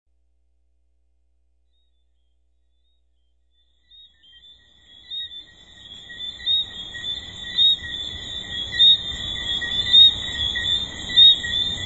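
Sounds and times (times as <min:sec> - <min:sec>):
tree frogs calling in a dense chorus at a resort: 0:03.6 - 0:11.8.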